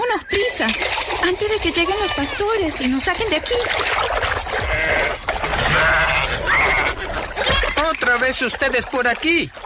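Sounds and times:
speech: 0.1s - 6.5s, 7.9s - 9.6s
sheep bleating: 4.6s - 7.0s.

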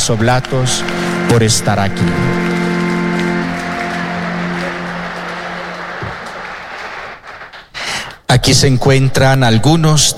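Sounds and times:
speech: 0.0s - 2.4s, 8.3s - 10.1s
low chord-like hum: 0.0s - 6.0s
audience applause: 0.0s - 7.9s.

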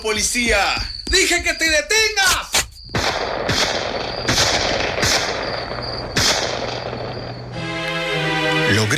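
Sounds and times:
speech: 0.0s - 2.5s, 8.7s - 8.9s
rushing noise: 0.0s - 8.9s
gunshots fired at a fleeing man: 2.9s - 7.4s.

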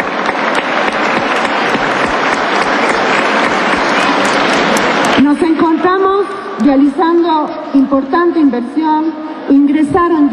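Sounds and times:
audience applause: 0.0s - 5.7s
speech: 6.7s - 10.3s.

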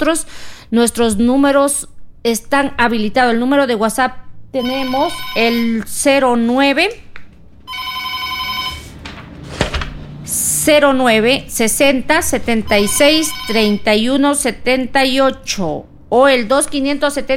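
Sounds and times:
speech: 0.0s - 7.0s, 10.6s - 17.3s
telephone ringing for an incoming call on a radio call-in show: 4.6s - 5.8s, 7.7s - 9.0s, 12.7s - 13.9s.

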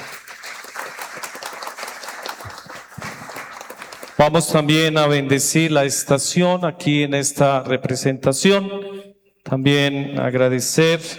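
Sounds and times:
audience applause: 0.0s - 4.4s
speech: 4.2s - 8.9s, 9.5s - 11.1s.

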